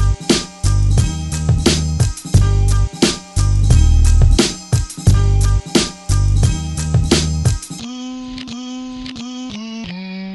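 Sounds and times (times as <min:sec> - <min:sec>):
beats: 0:00.3 - 0:07.8.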